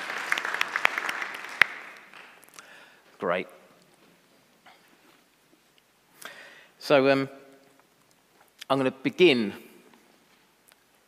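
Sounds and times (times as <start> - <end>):
audience applause: 0.0 - 2.4
speech: 3.2 - 3.6, 6.9 - 7.4, 8.7 - 9.7.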